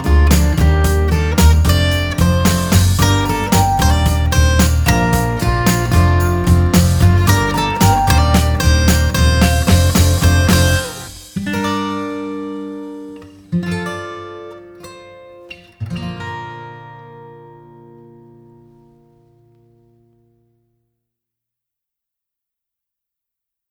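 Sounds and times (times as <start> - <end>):
instrumental music: 0.0 - 14.8.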